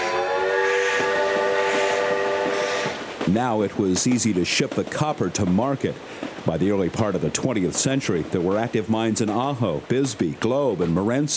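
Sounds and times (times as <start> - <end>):
whistle-like tone: 0.0 - 3.0
railroad train passing: 0.0 - 11.2
speech: 3.3 - 11.3.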